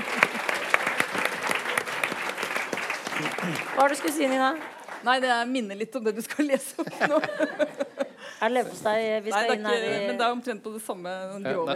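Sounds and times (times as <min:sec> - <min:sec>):
small group applause: 0:00.0 - 0:05.4
speech: 0:03.4 - 0:11.7
laughter: 0:06.6 - 0:08.4.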